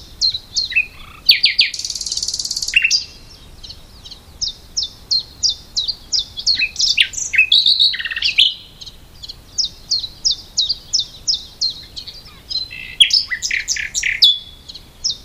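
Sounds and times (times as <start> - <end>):
common nightingale Luscinia megarhynchos singing whistles and buzzy rattle: 0.0 - 15.2.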